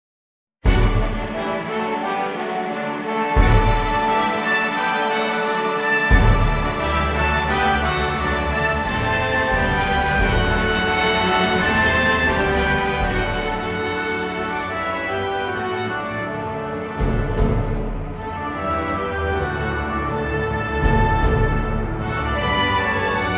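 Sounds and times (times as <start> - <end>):
fanfare: 0.7 - 23.3.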